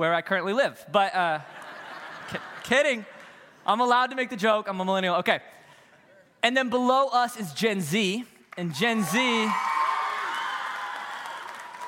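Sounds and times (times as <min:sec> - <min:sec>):
speech: 0:00.0 - 0:01.6, 0:02.3 - 0:05.6, 0:06.4 - 0:09.7
laughter: 0:01.4 - 0:03.0
audience clapping: 0:08.4 - 0:11.8.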